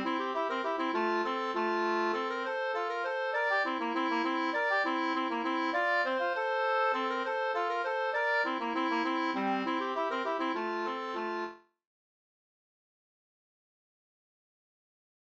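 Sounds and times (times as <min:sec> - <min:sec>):
polka music: 0:00.0 - 0:11.6.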